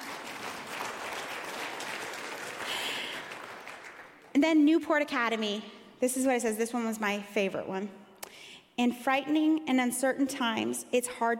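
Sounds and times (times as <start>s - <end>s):
crowd applauding: 0.0s - 4.4s
speech: 4.4s - 8.0s, 8.8s - 11.3s.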